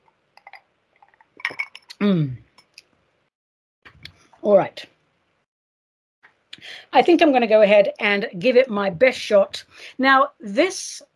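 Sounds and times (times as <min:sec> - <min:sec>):
glass clinking: 0:00.4 - 0:02.0
speech: 0:02.0 - 0:02.4, 0:04.4 - 0:04.9, 0:06.7 - 0:11.1.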